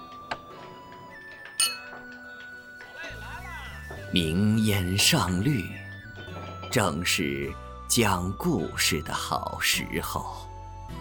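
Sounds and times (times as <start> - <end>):
small teacups clinking as set down: 1.2 - 2.9
speech: 4.1 - 5.8, 6.8 - 10.4.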